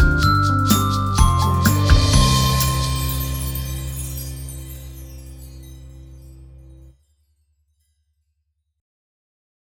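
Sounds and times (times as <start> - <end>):
musical accompaniment: 0.0 - 6.8
chime bars: 0.0 - 6.9.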